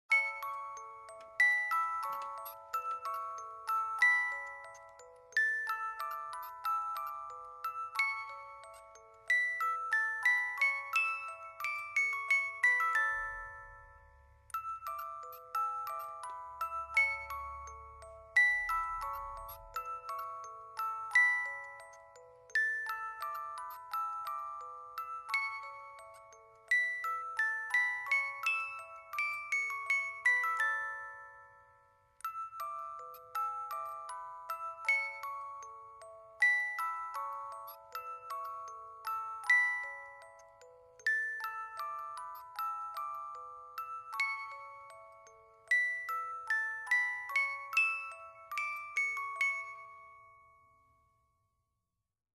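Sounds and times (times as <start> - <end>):
music box: 0.0 - 52.0.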